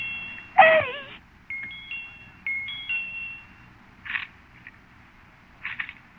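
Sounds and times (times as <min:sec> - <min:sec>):
doorbell ringing: 0:00.0 - 0:03.7.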